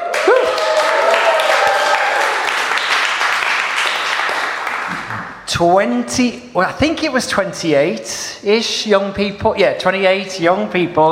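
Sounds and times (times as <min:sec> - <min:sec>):
audience cheering: 0:00.0 - 0:05.4
speech: 0:05.6 - 0:11.1.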